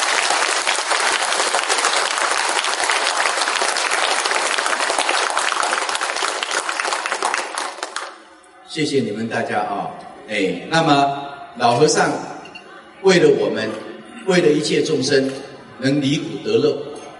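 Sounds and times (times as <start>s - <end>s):
audience applause: 0.0s - 8.2s
speech: 8.8s - 12.3s, 13.0s - 16.9s.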